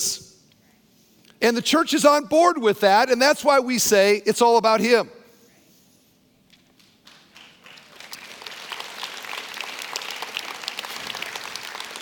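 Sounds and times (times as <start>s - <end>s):
speech: 1.4s - 5.2s
audience clapping: 6.7s - 12.0s.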